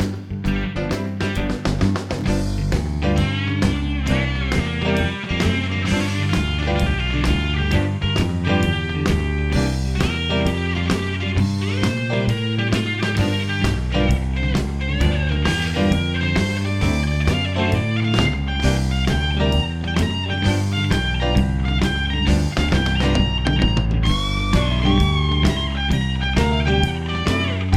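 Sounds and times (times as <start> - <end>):
full mix of blues music: 0.0 - 27.7.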